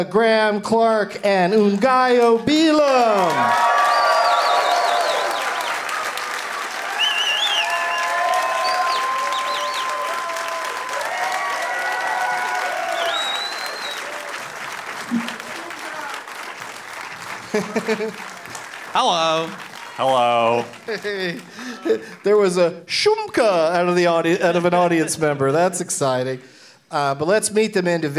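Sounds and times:
speech: 0.0 - 4.0, 17.6 - 18.3, 18.9 - 28.1
audience applause at a live comedy show: 1.6 - 22.6
scattered audience voices and whoops: 3.0 - 14.3
laughter: 15.0 - 16.0, 17.2 - 18.6, 19.3 - 22.3, 24.3 - 25.7.

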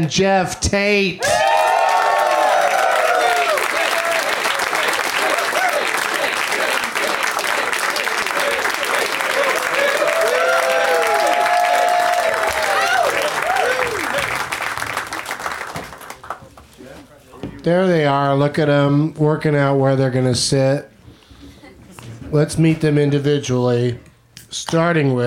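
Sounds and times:
speech: 0.0 - 1.5, 17.7 - 20.9, 22.3 - 25.2
whoops and cheers: 1.2 - 4.6, 5.2 - 6.0, 9.4 - 14.3
excited shouting voices: 1.2 - 14.2
applause from a large crowd: 1.2 - 16.6.

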